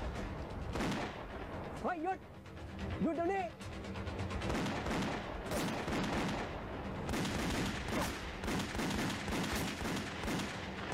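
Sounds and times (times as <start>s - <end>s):
rapid gunfire: 0.7s - 1.2s, 4.4s - 10.9s
speech: 1.8s - 2.4s, 3.0s - 4.0s.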